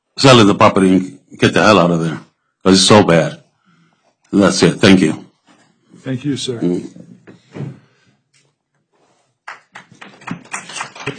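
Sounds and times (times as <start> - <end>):
speech: 0.2 - 3.4, 4.3 - 5.2, 6.0 - 7.7
audience applause: 9.4 - 11.1.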